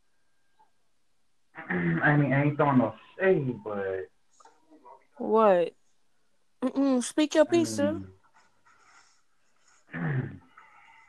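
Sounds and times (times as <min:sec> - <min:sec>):
speech: 0:01.7 - 0:04.1, 0:05.2 - 0:05.8, 0:06.6 - 0:08.2
gruff rasping throat clearing: 0:09.9 - 0:10.5.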